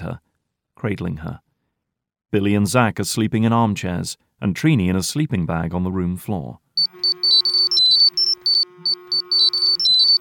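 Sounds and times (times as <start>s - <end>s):
speech: 0.0s - 0.2s, 0.8s - 1.4s, 2.3s - 7.3s
phone ringtone beeping: 6.8s - 10.1s.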